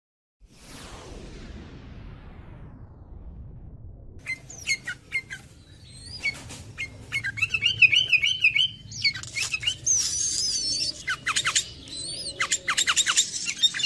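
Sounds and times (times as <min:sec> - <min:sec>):
sooty-headed bulbul singing chattering phrases: 0:04.3 - 0:13.8.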